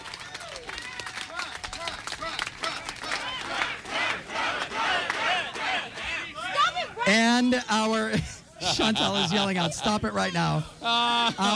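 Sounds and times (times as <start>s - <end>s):
audience clapping: 0.0s - 6.6s
speech: 7.1s - 11.5s
laughter: 8.1s - 11.5s.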